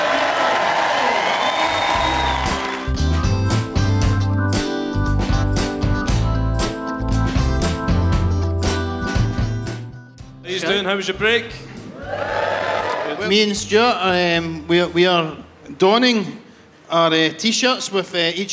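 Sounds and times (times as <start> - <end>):
crowd clapping and cheering: 0.0 - 3.4, 11.9 - 13.3
upbeat music track with a strong steady beat: 1.9 - 10.9
speech: 10.9 - 11.6, 13.2 - 18.5.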